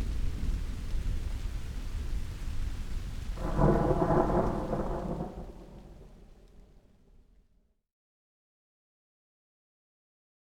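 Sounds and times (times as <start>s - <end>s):
thunderstorm: 0.0s - 6.6s.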